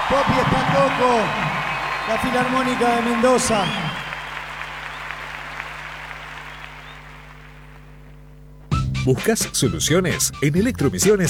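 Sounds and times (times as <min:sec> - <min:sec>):
audience applause for a philharmonic orchestra: 0:00.0 - 0:08.1
speech: 0:00.1 - 0:03.9, 0:09.0 - 0:11.2.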